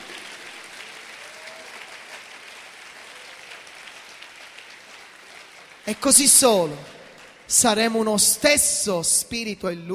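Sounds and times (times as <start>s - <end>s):
audience applause: 0.0s - 7.6s
speech: 5.9s - 9.9s.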